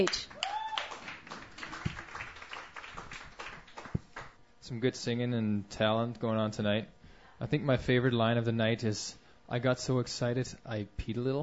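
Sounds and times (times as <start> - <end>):
speech: 0.0 - 0.3, 4.7 - 11.4
open mic audience clapping: 0.0 - 4.4.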